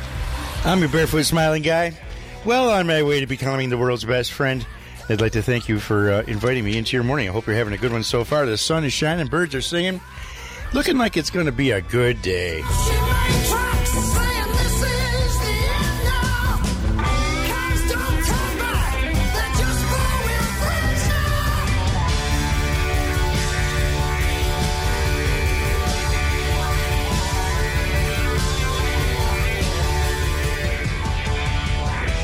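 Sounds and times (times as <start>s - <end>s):
driving drums: 0.0s - 32.2s
loud dense rock song with male lead vocal: 0.0s - 32.2s
speech: 0.6s - 13.0s
bright layered electric guitar: 12.6s - 32.2s.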